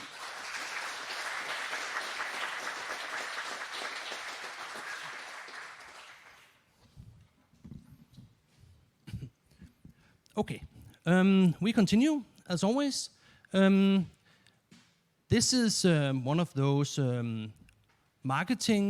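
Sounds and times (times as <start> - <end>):
audience applause: 0.0 - 6.5
speech: 10.4 - 14.2, 15.3 - 17.6, 18.2 - 18.8.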